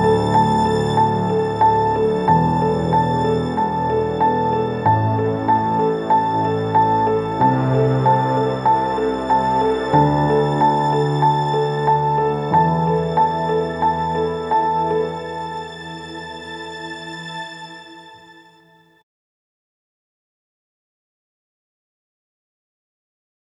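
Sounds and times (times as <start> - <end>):
Lexicon Model200 rich plate orchestral reverb: 0.0 - 18.8.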